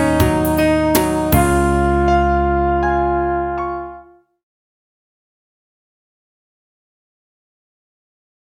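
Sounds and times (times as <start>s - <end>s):
karaoke backing track: 0.0s - 3.9s.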